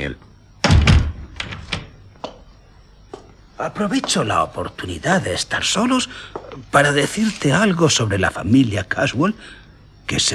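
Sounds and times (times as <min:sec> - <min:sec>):
speech: 0:00.0 - 0:00.3, 0:03.6 - 0:10.3
door closing in a radio drama: 0:00.6 - 0:02.0.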